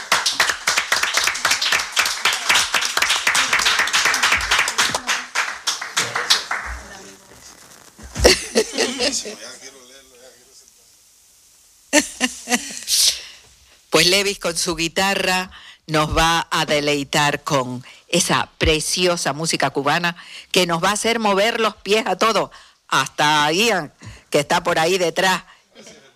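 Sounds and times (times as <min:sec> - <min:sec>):
audience applause: 0:00.0 - 0:07.6, 0:08.2 - 0:09.4
laughter: 0:08.2 - 0:09.8
speech: 0:09.2 - 0:09.8, 0:14.2 - 0:25.9.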